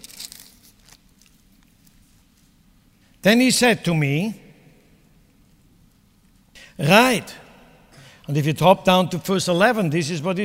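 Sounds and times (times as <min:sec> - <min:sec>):
Bible pages flipping: 0:00.0 - 0:02.6
speech: 0:03.2 - 0:04.4, 0:06.8 - 0:07.4, 0:08.3 - 0:10.4.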